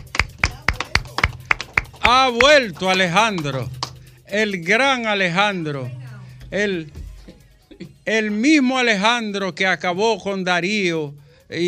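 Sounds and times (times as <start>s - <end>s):
person clapping: 0.0s - 4.1s
speech: 2.1s - 7.0s, 8.0s - 11.6s.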